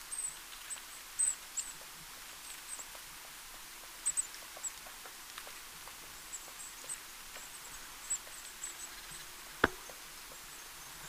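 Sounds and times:
Eurasian blue tit Cyanistes caeruleus giving thin high-pitched call notes: 0.1s - 11.0s.

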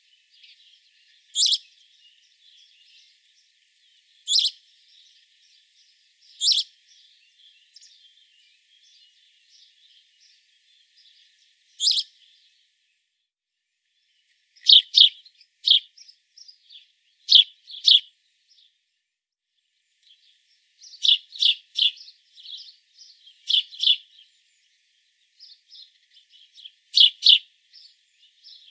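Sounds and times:
house sparrow chirps: 0.0s - 12.7s, 14.1s - 18.8s, 20.0s - 28.6s.

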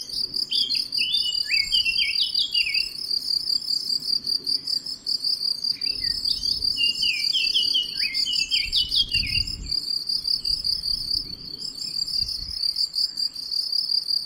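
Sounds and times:
Eurasian blackcap song: 0.0s - 3.0s, 5.7s - 13.6s
high pulsing cricket chorus: 0.0s - 14.2s.

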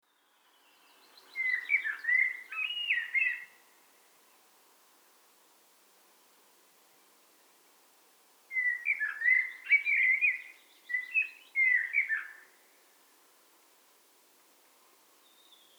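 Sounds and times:
Eurasian blackbird song: 0.2s - 3.6s, 8.5s - 12.6s.

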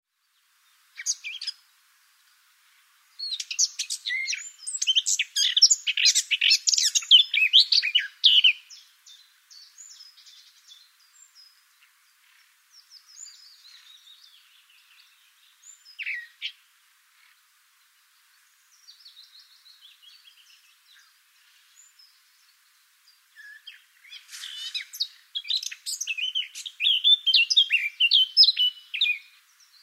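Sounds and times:
soft hiss: 0.1s - 29.8s
Eurasian blackcap singing: 1.0s - 1.6s, 3.2s - 11.6s, 12.8s - 16.6s, 23.4s - 29.8s.

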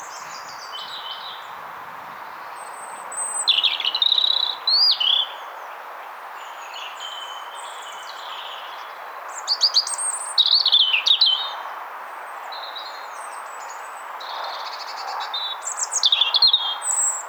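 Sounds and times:
European robin singing: 0.0s - 5.7s, 6.4s - 11.5s, 14.6s - 17.2s.

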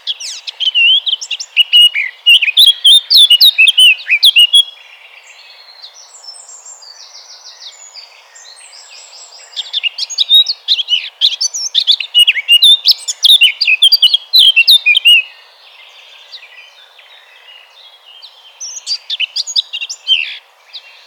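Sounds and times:
Eurasian blackcap Sylvia atricapilla song with dense warbling, sharp chirps and fluty whistles: 0.0s - 21.0s.

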